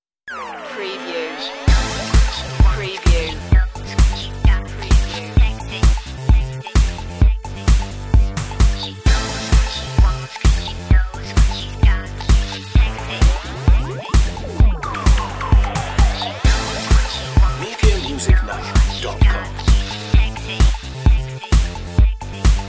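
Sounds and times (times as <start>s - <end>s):
vocal music: 0.5s - 22.6s.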